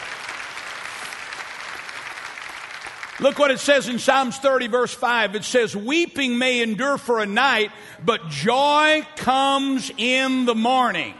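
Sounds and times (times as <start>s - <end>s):
audience clapping: 0.0s - 4.0s
speech: 3.2s - 11.1s.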